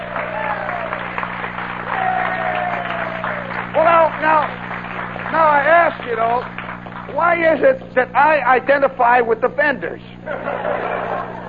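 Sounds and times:
audience applause: 0:00.0 - 0:07.4
speech: 0:07.1 - 0:10.9
laughter: 0:10.2 - 0:11.4.

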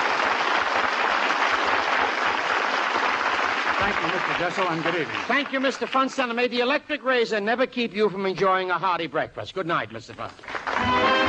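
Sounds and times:
studio audience applause: 0:00.0 - 0:06.6, 0:10.3 - 0:11.2
speech: 0:03.9 - 0:11.2.

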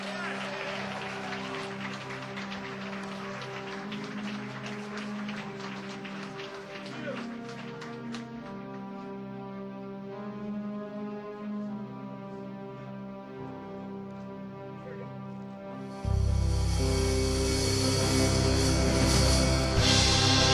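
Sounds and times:
crowd applauding: 0:00.0 - 0:09.0, 0:16.1 - 0:20.5
low sustained hum: 0:16.0 - 0:20.5.

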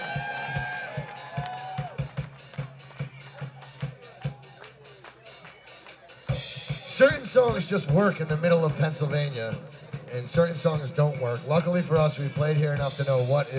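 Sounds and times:
concert crowd cheering for the drummer at a live show in central Pennsylvania: 0:00.0 - 0:06.0
steady evenly spaced drum beat: 0:00.0 - 0:13.5
speech: 0:07.0 - 0:13.5.

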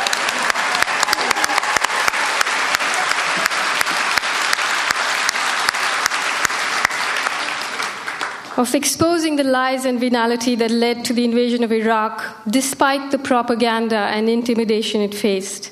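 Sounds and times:
audience applause: 0:00.0 - 0:08.6
speech: 0:08.6 - 0:15.7.

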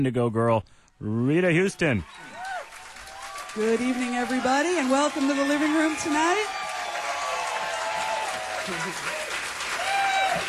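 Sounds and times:
speech: 0:00.0 - 0:02.4, 0:03.6 - 0:06.6, 0:08.7 - 0:09.2
packed-house audience applauding at a live concert performance: 0:01.8 - 0:10.4
crowd voices: 0:03.3 - 0:10.4.

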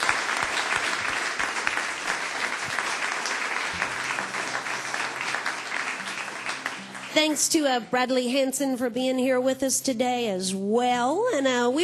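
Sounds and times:
audience applause: 0:00.0 - 0:07.6
speech: 0:07.2 - 0:11.8.

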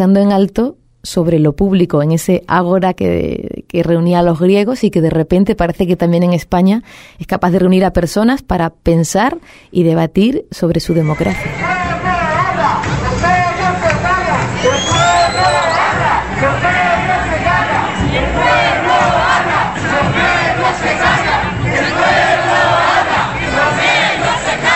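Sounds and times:
speech: 0:00.0 - 0:12.0
protest crowd shouting and chanting: 0:10.9 - 0:24.7.

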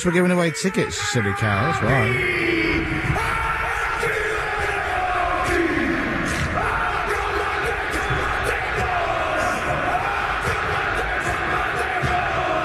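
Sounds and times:
speech: 0:00.0 - 0:03.4
crowd roar: 0:00.0 - 0:12.6
male voices shouting a haka war chant in unison: 0:01.6 - 0:12.6.

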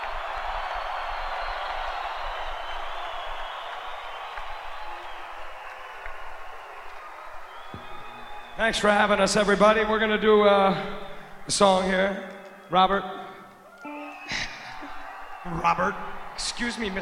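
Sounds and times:
audience applause: 0:00.0 - 0:08.9, 0:13.7 - 0:16.9
speech: 0:08.6 - 0:13.2, 0:15.5 - 0:16.9.

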